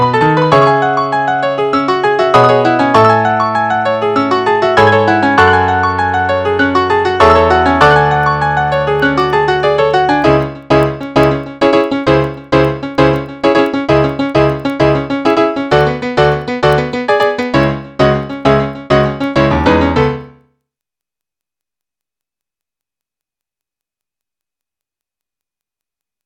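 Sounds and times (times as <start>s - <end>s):
battle piano music: 0.0s - 20.4s.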